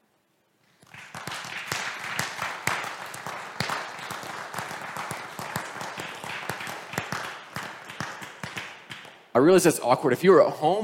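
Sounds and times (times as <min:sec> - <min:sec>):
audience applauding: 0:00.8 - 0:09.2
speech: 0:09.4 - 0:10.8.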